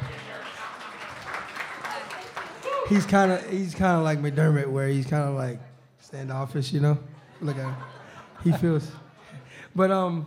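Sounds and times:
audience clapping: 0:00.0 - 0:04.2
speech: 0:02.9 - 0:09.0, 0:09.7 - 0:10.2
laughter: 0:07.0 - 0:09.7.

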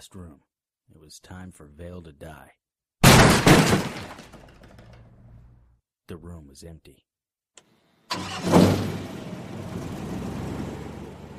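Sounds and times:
speech: 0:00.0 - 0:02.6, 0:06.1 - 0:09.0
boat engine starting: 0:08.1 - 0:11.3.

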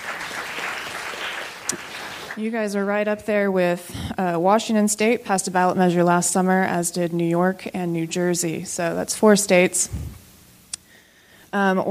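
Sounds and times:
audience applause: 0:00.0 - 0:02.4
speech: 0:01.7 - 0:10.2, 0:11.5 - 0:11.8.

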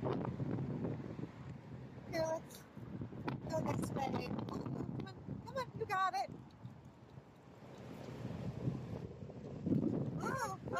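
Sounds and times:
wind blowing outdoors buffeting the microphone during a walk with a dog: 0:00.0 - 0:10.7
speech: 0:03.5 - 0:04.9, 0:05.6 - 0:06.4.

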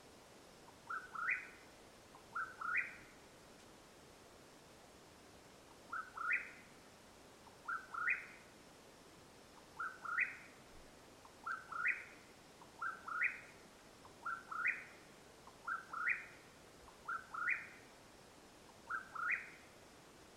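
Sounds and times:
Mexican whip-poor-will whistled calls: 0:00.9 - 0:01.6, 0:02.3 - 0:03.1, 0:05.9 - 0:06.7, 0:07.6 - 0:08.4, 0:09.8 - 0:10.5, 0:11.4 - 0:12.2, 0:12.8 - 0:13.5, 0:14.2 - 0:15.0, 0:15.6 - 0:16.4, 0:17.0 - 0:17.8, 0:18.9 - 0:19.6.

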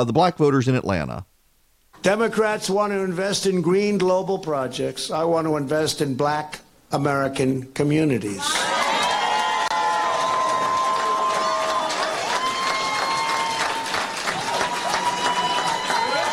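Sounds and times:
speech: 0:00.0 - 0:01.3, 0:02.0 - 0:08.8
large rally crowd cheering and applauding: 0:08.4 - 0:16.3.

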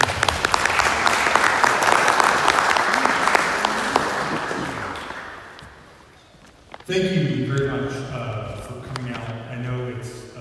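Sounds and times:
audience applause: 0:00.0 - 0:06.2
speech: 0:06.9 - 0:08.2.

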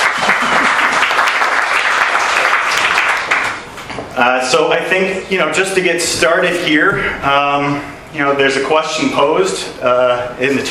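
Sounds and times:
audience applause welcoming panel discussion guests: 0:00.0 - 0:03.6
speech: 0:04.2 - 0:10.6.

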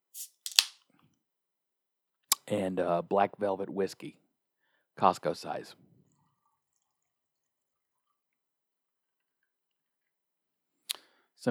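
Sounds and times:
can of Diet Canada Dry soda opening: 0:00.2 - 0:00.8
speech: 0:02.5 - 0:04.2, 0:05.0 - 0:05.9.

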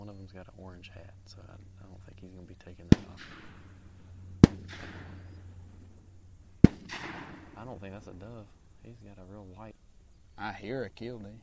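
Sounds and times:
low hum: 0:00.0 - 0:10.8
speech: 0:00.4 - 0:03.8, 0:07.6 - 0:09.8, 0:10.4 - 0:11.4
distant shotgun shot at a dove hunt: 0:02.9 - 0:05.9, 0:06.6 - 0:08.0.

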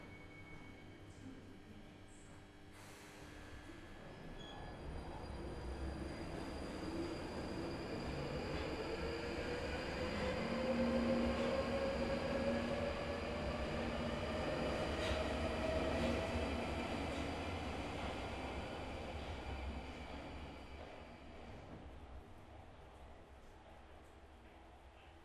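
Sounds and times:
empty Underground train rumbling: 0:04.2 - 0:25.1.

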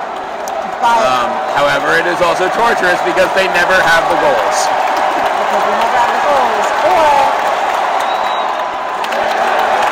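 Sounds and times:
large stadium crowd cheering: 0:00.0 - 0:09.9
speech: 0:00.8 - 0:07.3
scattered claps: 0:03.8 - 0:09.9.

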